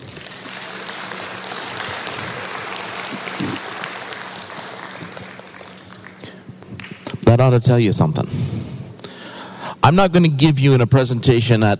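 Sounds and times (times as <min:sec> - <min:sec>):
audience applause: 0:00.0 - 0:07.1
speech: 0:07.3 - 0:08.6, 0:09.9 - 0:11.7.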